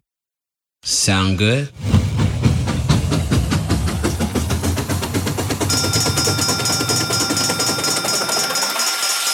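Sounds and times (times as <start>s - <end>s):
speech: 1.1s - 1.9s
train engine idling before departure: 1.8s - 8.8s.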